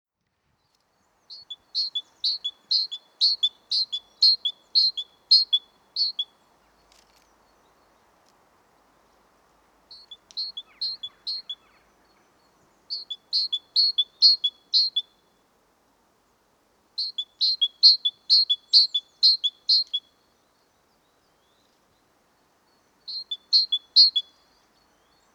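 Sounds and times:
great tit singing: 0:01.3 - 0:06.2, 0:09.9 - 0:11.8, 0:12.9 - 0:15.0, 0:17.0 - 0:20.0, 0:23.0 - 0:24.2.

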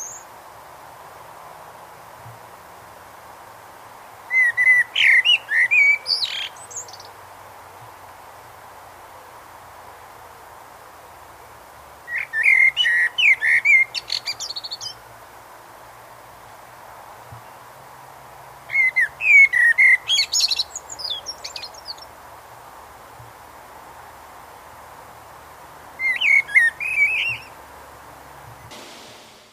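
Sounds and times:
Eurasian blackbird singing: 0:00.0 - 0:00.3, 0:04.3 - 0:07.2, 0:12.1 - 0:15.0, 0:18.7 - 0:22.1, 0:26.0 - 0:27.6.

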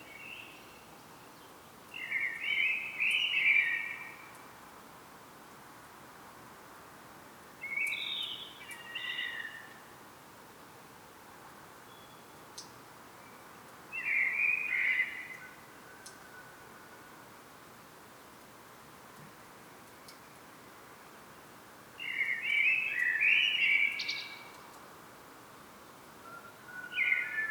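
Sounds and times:
common blackbird song: 0:00.0 - 0:04.4, 0:07.6 - 0:09.8, 0:11.9 - 0:17.0, 0:22.0 - 0:24.8, 0:26.2 - 0:27.4.

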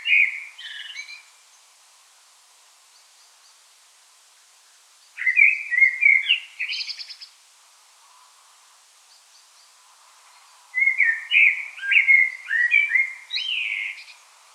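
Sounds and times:
common blackbird singing: 0:00.0 - 0:01.2, 0:05.2 - 0:07.2, 0:10.8 - 0:14.2.

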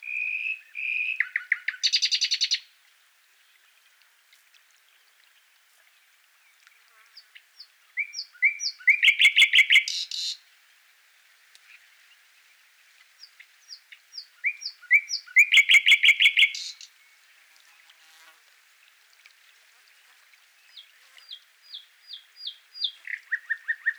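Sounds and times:
common nightingale singing: 0:00.0 - 0:02.7, 0:07.2 - 0:10.4, 0:13.2 - 0:17.2, 0:20.6 - 0:23.9.

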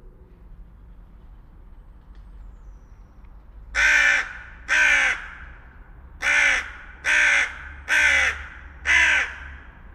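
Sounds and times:
carrion crow Corvus corone calling with rough grating caws: 0:03.8 - 0:05.5, 0:06.2 - 0:09.7.

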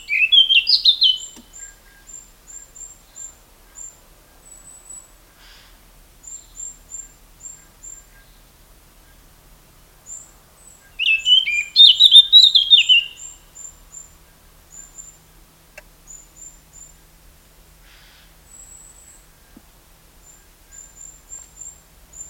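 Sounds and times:
Eurasian blackcap warbling: 0:00.0 - 0:01.7, 0:11.0 - 0:13.2.

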